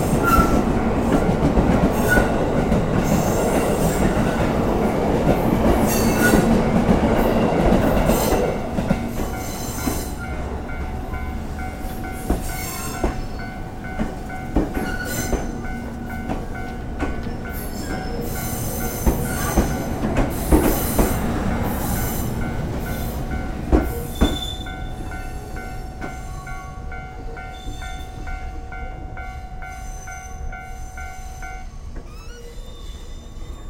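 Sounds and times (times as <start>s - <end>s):
trains passing: 0.0s - 33.6s.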